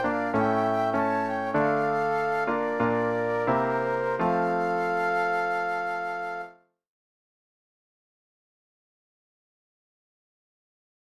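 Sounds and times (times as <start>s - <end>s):
flute duet: 0.0s - 6.7s
piano: 0.0s - 6.7s.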